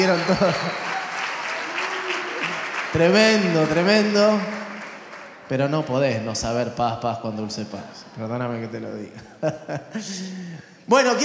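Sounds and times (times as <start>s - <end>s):
speech: 0.0s - 0.9s, 2.9s - 4.6s, 5.5s - 11.2s
crowd applause: 0.0s - 6.0s
laughter: 9.1s - 10.5s.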